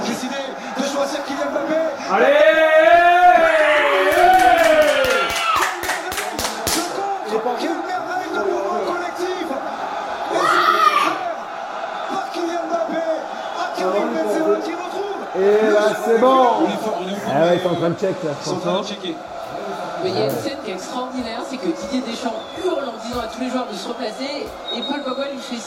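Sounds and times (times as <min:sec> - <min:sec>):
football supporters cheering in joy: 0:00.0 - 0:25.6
speech: 0:01.0 - 0:02.7, 0:17.6 - 0:19.3, 0:20.0 - 0:25.6
rapid clapping: 0:04.1 - 0:07.0.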